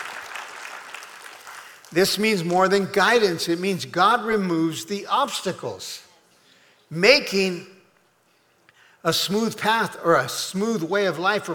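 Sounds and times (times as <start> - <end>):
audience clapping: 0.0 - 3.0
speech: 1.9 - 6.1, 6.9 - 7.8, 9.0 - 11.5.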